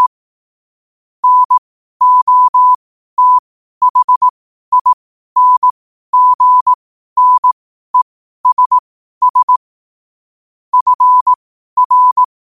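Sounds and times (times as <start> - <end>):
morse code at 5 wpm: 1.2 - 7.6, 8.4 - 9.6, 10.8 - 12.3.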